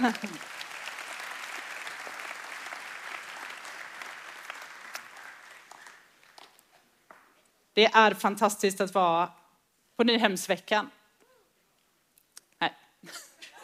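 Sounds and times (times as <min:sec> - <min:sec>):
speech: 0:00.0 - 0:00.6, 0:07.8 - 0:09.4, 0:10.0 - 0:11.0, 0:12.6 - 0:13.3
audience applause: 0:00.0 - 0:06.5.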